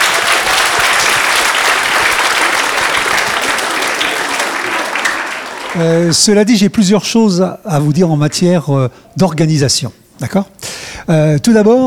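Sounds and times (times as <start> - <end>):
thunderous applause from school audience: 0.0 - 6.4
speech: 5.8 - 11.8.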